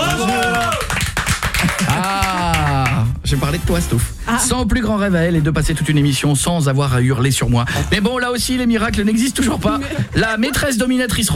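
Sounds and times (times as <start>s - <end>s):
studio team clapping: 0.0s - 3.1s
speech: 3.3s - 11.3s.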